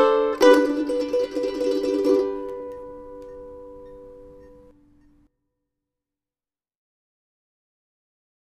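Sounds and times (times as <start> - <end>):
mandolin: 0.0 - 5.2.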